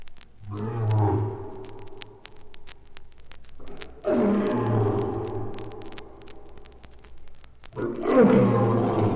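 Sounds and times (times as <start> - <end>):
lion roaring: 0.5 - 1.5, 4.0 - 5.2, 7.8 - 9.1.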